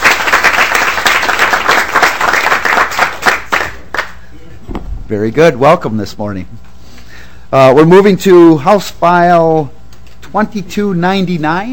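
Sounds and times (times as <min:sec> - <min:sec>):
applause welcoming visiting government students at the state Capitol: 0:00.0 - 0:04.2
speech: 0:05.1 - 0:06.6, 0:07.5 - 0:11.7.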